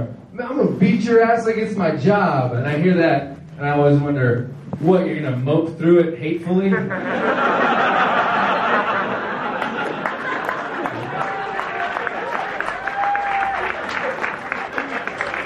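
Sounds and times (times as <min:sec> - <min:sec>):
speech: 0:00.5 - 0:07.9
light chuckles: 0:06.6 - 0:07.2
crowd clapping: 0:08.0 - 0:15.4.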